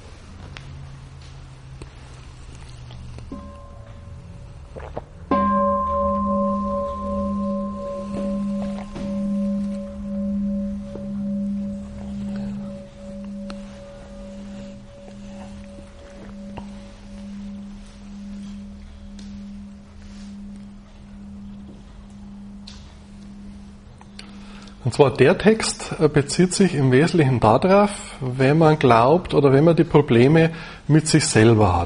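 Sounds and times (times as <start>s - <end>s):
bell ringing: 3.3s - 4.7s, 5.3s - 26.1s
speech: 24.9s - 31.8s.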